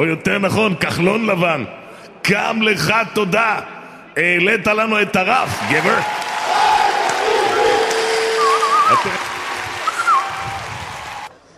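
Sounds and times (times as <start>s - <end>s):
speech: 0.0s - 6.2s, 8.9s - 9.2s
audience clapping and cheering: 5.3s - 11.3s.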